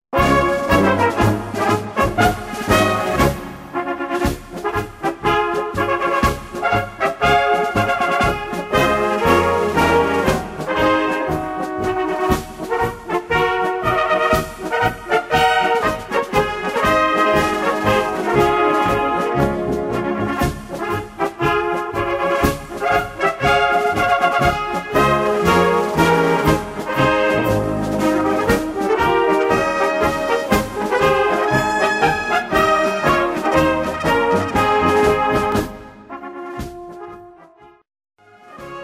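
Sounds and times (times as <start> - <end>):
march music: 0.1 - 38.8.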